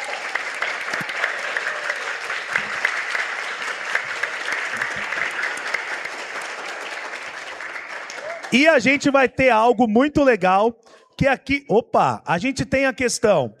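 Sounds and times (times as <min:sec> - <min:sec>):
round of applause from a group: 0:00.0 - 0:09.6
speech: 0:08.5 - 0:13.5.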